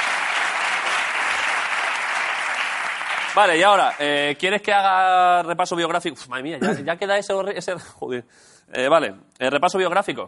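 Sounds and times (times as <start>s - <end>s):
applause: 0.0s - 4.4s
speech: 3.4s - 10.2s.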